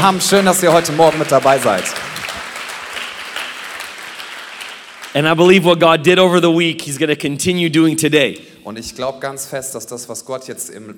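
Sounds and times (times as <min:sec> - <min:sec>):
speech: 0:00.0 - 0:02.1, 0:05.2 - 0:10.9
audience applause: 0:00.0 - 0:05.6.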